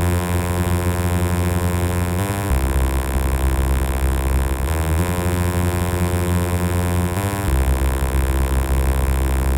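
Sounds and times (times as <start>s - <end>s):
monotone tone vocoded with white noise: 0.0s - 9.5s.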